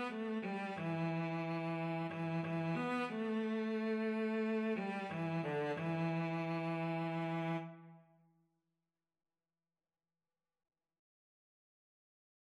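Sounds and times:
cello duet: 0:00.0 - 0:08.0.

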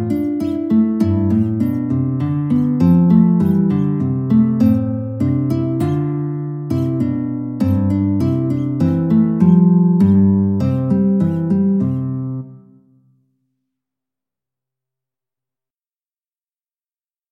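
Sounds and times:
guitar: 0:00.0 - 0:13.3.

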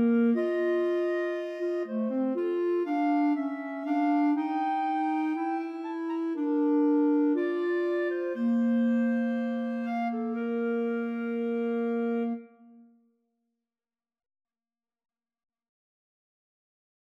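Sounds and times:
clarinet trio: 0:00.0 - 0:12.6.

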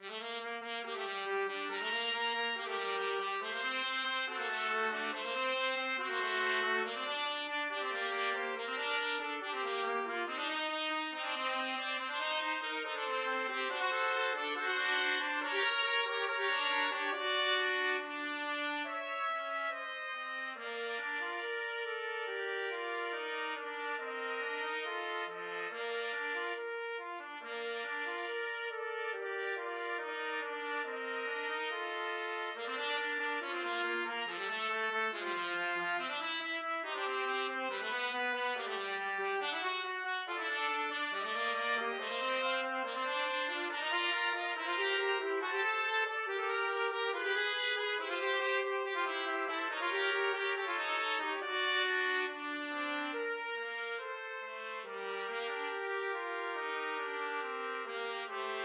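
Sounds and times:
trumpet trio playing: 0:00.0 - 0:58.6.

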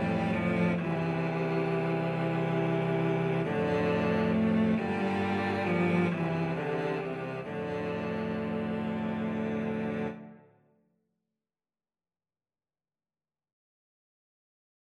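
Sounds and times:
cello quartet: 0:00.0 - 0:10.4.

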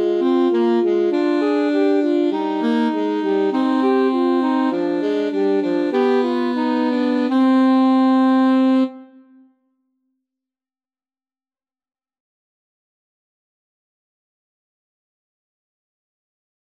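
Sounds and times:
alto saxophone: 0:00.0 - 0:09.6.

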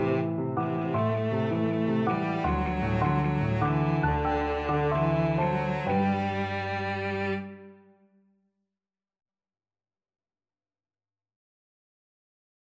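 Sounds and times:
violoncello: 0:00.0 - 0:08.0.

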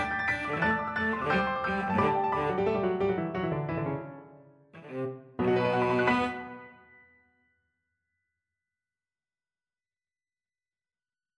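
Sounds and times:
violoncello: 0:00.0 - 0:04.0, 0:04.8 - 0:06.8.

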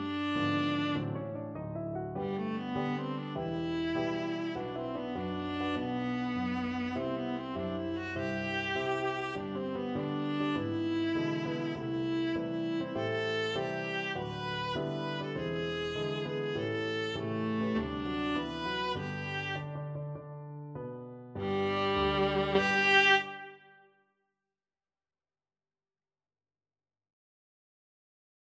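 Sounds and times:
viola: 0:00.0 - 0:19.8, 0:21.4 - 0:23.9.

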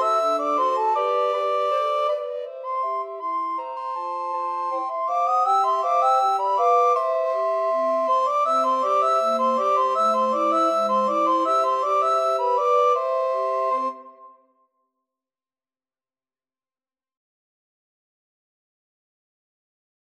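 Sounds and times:
recorder quartet: 0:00.0 - 0:14.3.

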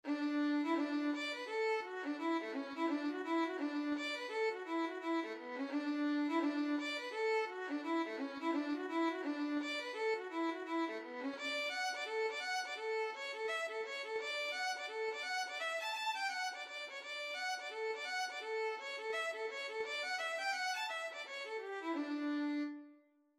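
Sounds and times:
violin: 0:00.0 - 0:23.0.

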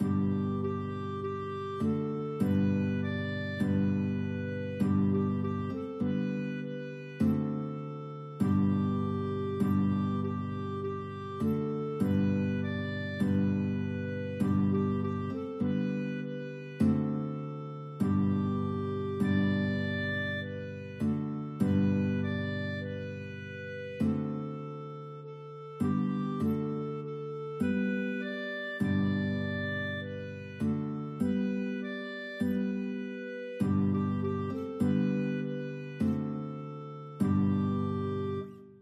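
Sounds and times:
guitar and clarinet duet: 0:00.0 - 0:38.7.

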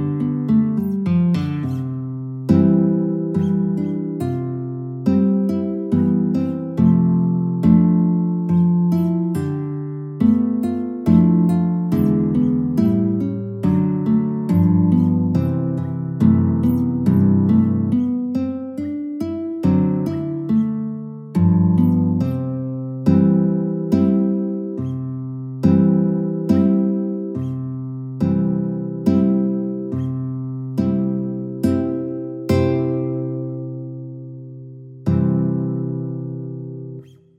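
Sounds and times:
guitar theme: 0:00.0 - 0:37.3.

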